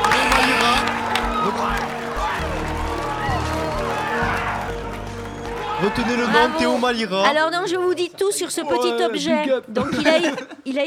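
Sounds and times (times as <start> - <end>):
audience applause: 0.0 - 7.0
crowd cheering: 0.0 - 7.1
scattered excited voices: 0.0 - 7.1
speech: 5.8 - 10.8.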